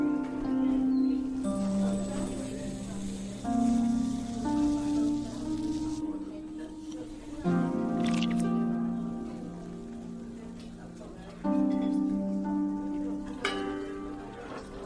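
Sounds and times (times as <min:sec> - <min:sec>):
soft sustained melody of fantasy fairy cafe ambience: 0:00.0 - 0:14.8
faint hiss: 0:01.3 - 0:07.6.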